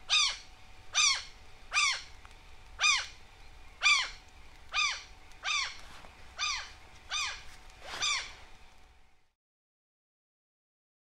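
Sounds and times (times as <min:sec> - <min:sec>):
common gull calling shrilly: 0:00.1 - 0:02.1, 0:02.8 - 0:03.2, 0:03.8 - 0:05.8, 0:06.4 - 0:08.4.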